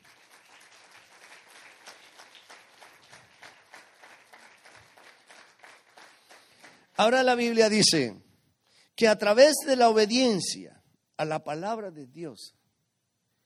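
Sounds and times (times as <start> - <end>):
audience applause: 0.0 - 6.9
speech: 7.0 - 8.2, 9.0 - 12.6.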